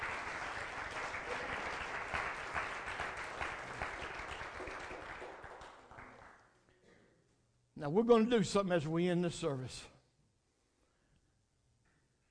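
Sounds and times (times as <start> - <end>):
crowd clapping: 0.0 - 6.6
speech: 7.8 - 9.9.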